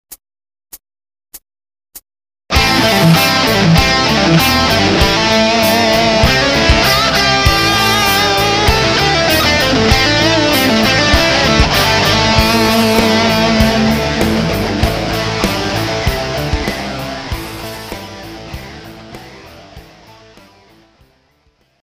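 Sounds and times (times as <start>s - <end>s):
musical lick: 2.5s - 20.2s.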